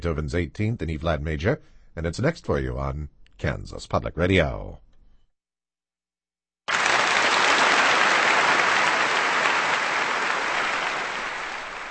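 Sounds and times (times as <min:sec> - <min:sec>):
speech: 0:00.0 - 0:04.9
concert audience applause: 0:06.7 - 0:11.8.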